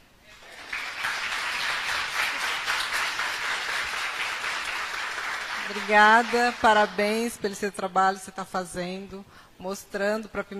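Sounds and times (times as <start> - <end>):
crowd applauding: 0.3 - 7.2
speech: 5.7 - 10.5.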